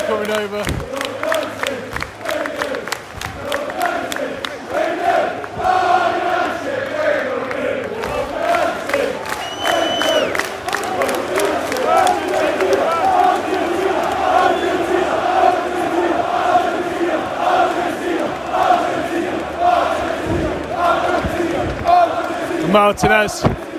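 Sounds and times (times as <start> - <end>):
away football crowd cheering and chanting: 0.0 - 23.7
people clapping: 0.0 - 23.7
speech: 0.1 - 1.8, 22.8 - 23.6.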